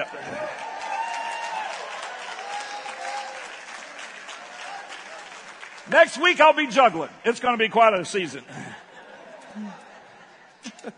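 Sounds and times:
audience applause: 0:00.0 - 0:06.7
speech: 0:05.9 - 0:08.8
laughter: 0:08.4 - 0:10.9.

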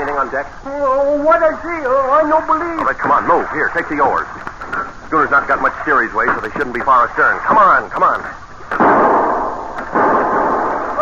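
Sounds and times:
speech: 0:00.2 - 0:04.5, 0:05.1 - 0:08.8
gunshots on the deck of a schooner: 0:08.7 - 0:11.0.

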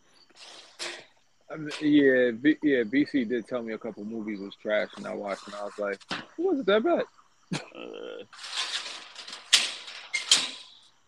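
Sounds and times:
speech: 0:01.5 - 0:08.5
metal cage doors being closed: 0:08.4 - 0:10.9.

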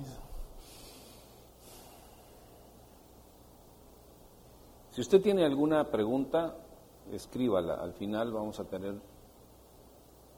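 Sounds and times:
quiet hiss: 0:00.0 - 0:10.3
audible breathing during a guided deep breathing exercise: 0:00.6 - 0:02.8
speech: 0:05.0 - 0:09.1.

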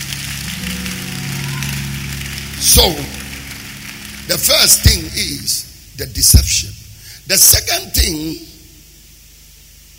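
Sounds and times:
crowd clapping: 0:00.0 - 0:05.8
low keyboard or organ tones: 0:00.0 - 0:09.9
speech: 0:02.6 - 0:03.2, 0:04.3 - 0:08.5.

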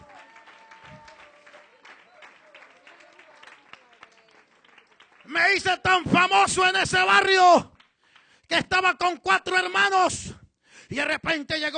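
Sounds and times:
audience applause: 0:00.0 - 0:05.6
speech: 0:05.3 - 0:07.7, 0:08.5 - 0:11.7.

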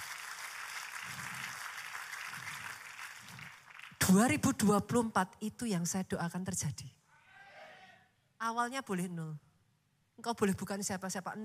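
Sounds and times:
audience applause: 0:00.0 - 0:04.0
speech: 0:04.1 - 0:07.0, 0:08.4 - 0:09.4, 0:10.2 - 0:11.4.

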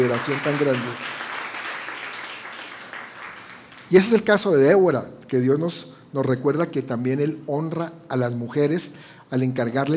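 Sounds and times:
speech: 0:00.0 - 0:01.2, 0:03.9 - 0:09.9
audience applause: 0:00.0 - 0:03.9.

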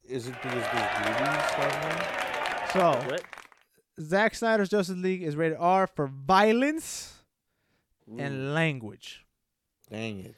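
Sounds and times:
speech: 0:00.1 - 0:03.4, 0:04.0 - 0:07.2, 0:08.1 - 0:09.2, 0:09.9 - 0:10.3
voices whooping and cheering: 0:00.2 - 0:03.3
clapping sound effect: 0:00.3 - 0:03.6.

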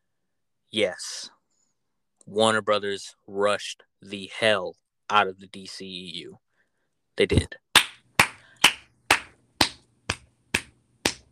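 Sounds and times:
speech: 0:00.7 - 0:01.4, 0:02.3 - 0:06.4, 0:07.2 - 0:07.6
quick hand clapping: 0:07.8 - 0:11.2.

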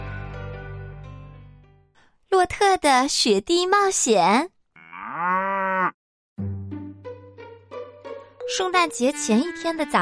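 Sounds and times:
speech: 0:02.4 - 0:04.6, 0:08.5 - 0:10.0
dairy cow mooing: 0:04.8 - 0:06.0.

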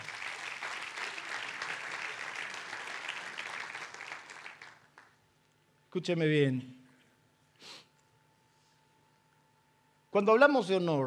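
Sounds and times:
applause: 0:00.0 - 0:05.2
speech: 0:06.0 - 0:06.8, 0:10.2 - 0:11.0.

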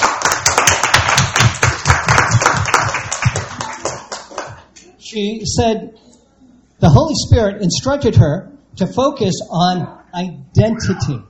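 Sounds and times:
audience clapping: 0:00.0 - 0:04.8
speech: 0:05.2 - 0:06.0, 0:06.8 - 0:11.2.

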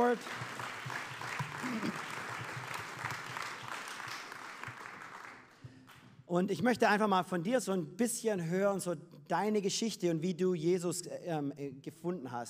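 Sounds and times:
speech: 0:00.0 - 0:00.6, 0:06.3 - 0:12.4
audience applause: 0:00.0 - 0:06.0.

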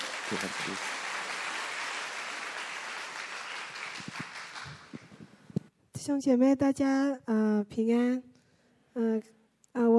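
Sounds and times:
audience applause: 0:00.0 - 0:05.2
speech: 0:00.3 - 0:01.0, 0:06.1 - 0:08.3, 0:09.0 - 0:09.9.

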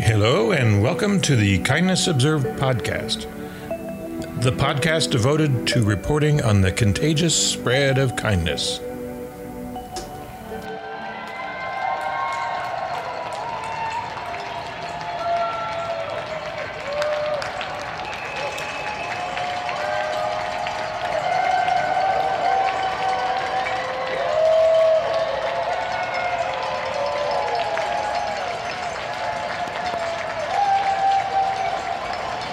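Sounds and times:
speech: 0:00.1 - 0:03.4, 0:04.4 - 0:08.9
neighborhood crowd clapping for medical staff: 0:10.7 - 0:32.5
high whistles: 0:18.0 - 0:19.5.

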